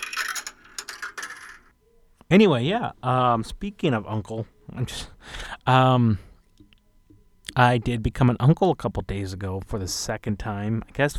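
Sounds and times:
coin-drop sound effect with metallic clinks: 0.0s - 1.7s
speech: 2.3s - 6.3s, 7.6s - 11.1s.

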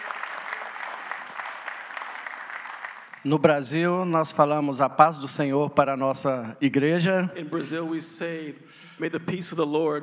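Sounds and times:
audience in a church applauding guest speakers: 0.0s - 3.5s
speech: 3.2s - 10.0s.

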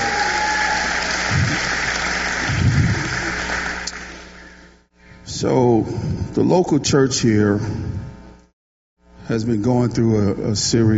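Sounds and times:
audience clapping hands: 0.0s - 4.6s
low murmurs: 1.0s - 3.9s
speech: 5.4s - 8.0s, 9.3s - 10.9s.

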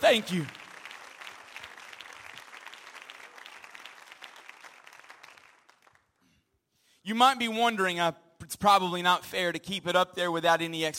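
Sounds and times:
sustained crowd applause: 0.0s - 6.1s
speech: 0.1s - 0.6s, 7.1s - 10.9s.

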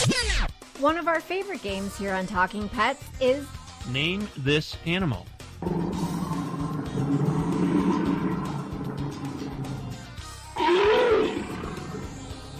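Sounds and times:
speech: 0.8s - 6.1s
bear growling and roaring: 5.6s - 12.5s.

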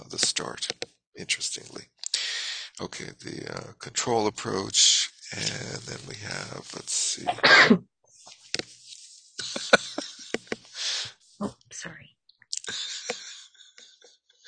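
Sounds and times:
laughter: 0.0s - 7.4s, 9.4s - 11.1s, 12.6s - 14.4s
speech: 0.1s - 2.0s, 2.8s - 7.9s, 11.4s - 12.8s
person sneezing: 5.3s - 7.8s, 10.8s - 11.1s.

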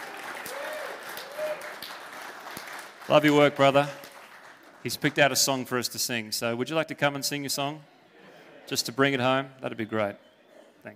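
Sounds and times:
audience applauding to welcome a performer: 0.0s - 5.9s
speech: 3.1s - 4.0s, 4.8s - 8.0s, 8.7s - 10.9s.

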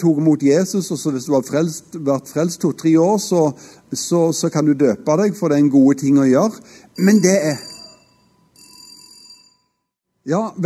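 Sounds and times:
speech: 0.0s - 7.7s, 10.3s - 10.6s
fire alarm bell ringing: 7.0s - 10.0s.

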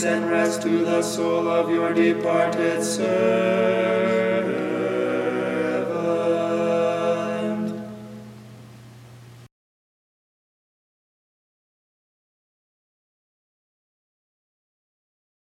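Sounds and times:
choir chanting stichera: 0.0s - 8.3s.

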